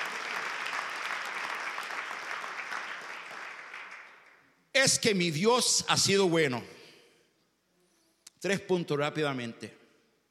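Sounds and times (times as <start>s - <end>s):
loud audience applause: 0.0s - 4.4s
speech: 4.8s - 6.8s, 8.4s - 9.8s.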